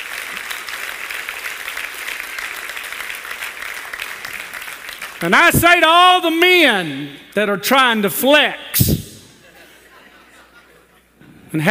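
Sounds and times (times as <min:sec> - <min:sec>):
audience clapping: 0:00.0 - 0:05.6
speech: 0:05.2 - 0:08.9, 0:11.5 - 0:11.7
laughter: 0:09.2 - 0:11.2.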